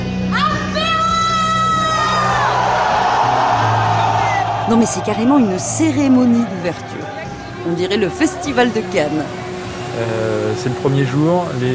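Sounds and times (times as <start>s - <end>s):
crowd cheering at supermarket opening: 0.3s - 11.1s
high rising whoop: 1.2s - 5.6s
speech: 4.7s - 9.4s, 10.0s - 11.7s.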